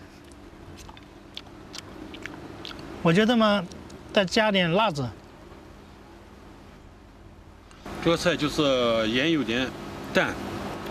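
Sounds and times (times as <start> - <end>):
person eating stir-fried gourd with pork: 0.0 - 2.9
speech: 3.0 - 5.2, 8.0 - 10.5.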